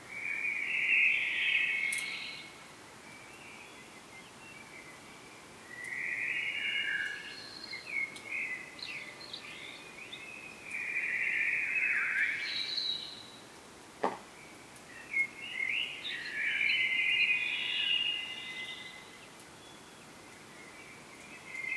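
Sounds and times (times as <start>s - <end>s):
background noise: 0.0s - 21.7s
common blackbird singing: 0.2s - 2.5s, 3.1s - 13.4s, 14.4s - 21.7s
sharp knock: 14.0s - 14.2s.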